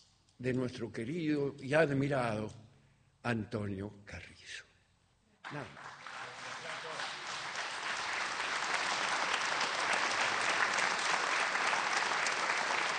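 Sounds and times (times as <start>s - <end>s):
speech: 0.4s - 4.7s, 5.5s - 6.0s
audience applause: 5.5s - 12.9s.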